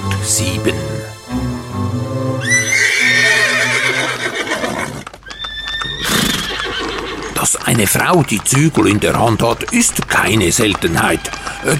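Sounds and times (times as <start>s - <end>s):
speech: 0.2s - 1.4s, 7.7s - 11.7s
horse whinnying: 2.4s - 7.5s, 10.8s - 11.7s
horse hooves clip-clopping: 2.4s - 11.7s.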